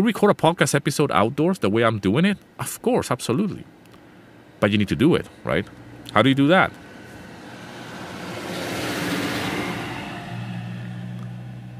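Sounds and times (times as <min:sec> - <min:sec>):
speech: 0:00.0 - 0:03.8, 0:04.6 - 0:06.8
car passing by outdoors: 0:06.6 - 0:11.7.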